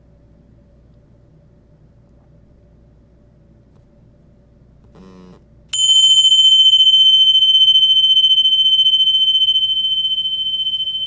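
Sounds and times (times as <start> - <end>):
meditation chime: 5.8 - 11.0.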